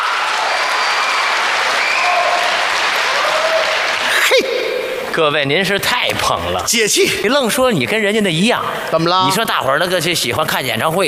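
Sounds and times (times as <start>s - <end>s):
applause: 0.0s - 4.5s
speech: 5.2s - 11.0s.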